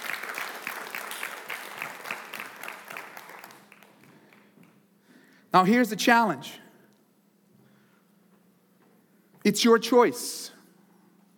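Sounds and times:
audience applause: 0.0 - 4.7
speech: 5.5 - 6.6, 9.5 - 10.6.

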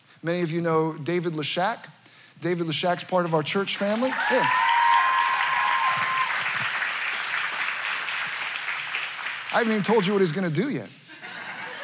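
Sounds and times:
speech: 0.2 - 4.7, 9.5 - 11.0
audience clapping: 3.9 - 10.5
laughter: 11.1 - 11.8.

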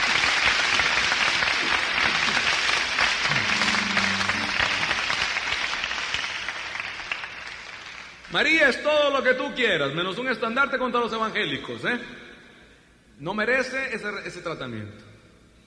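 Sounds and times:
loud audience applause: 0.0 - 8.3
speech: 8.3 - 12.2, 13.2 - 15.1.

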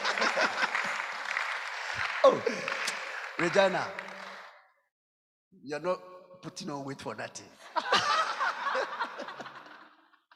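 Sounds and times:
laughter: 0.0 - 3.5, 7.6 - 10.3
audience clapping: 0.0 - 4.6
speech: 2.2 - 4.2, 5.6 - 8.0.

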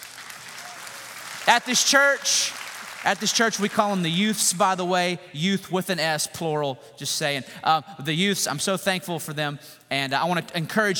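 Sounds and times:
crowd applauding: 0.0 - 4.2
speech: 1.5 - 10.9.

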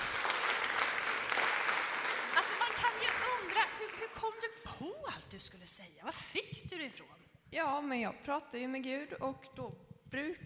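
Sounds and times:
applause: 0.0 - 4.3
speech: 4.1 - 10.4.

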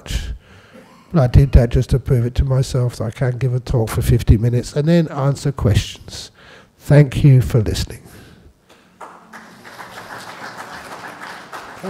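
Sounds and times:
speech: 1.1 - 6.3, 6.9 - 8.1
audience applause: 9.0 - 11.8.

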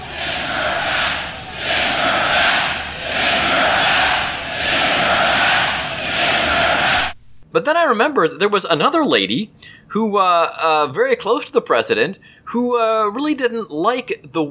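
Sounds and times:
large crowd roaring and booing: 0.0 - 7.2
speech: 7.6 - 14.4.

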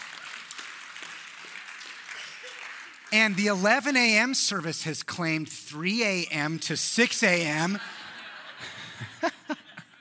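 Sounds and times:
crowd clapping: 0.0 - 4.4
speech: 3.1 - 8.0
laughter: 7.4 - 9.9.

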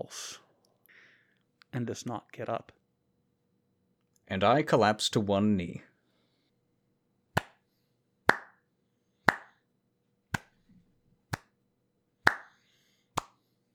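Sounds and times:
speech: 0.0 - 0.4, 1.7 - 2.8, 4.3 - 5.9
slow clapping by one person: 7.4 - 7.6, 8.3 - 8.6, 9.3 - 9.6, 10.4 - 10.6, 11.3 - 11.6, 12.3 - 12.6, 13.2 - 13.4.

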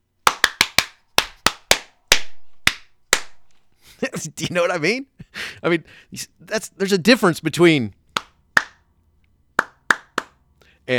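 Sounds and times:
hand clapping: 0.2 - 3.6, 8.1 - 8.8, 9.6 - 10.4
speech: 4.1 - 8.0.

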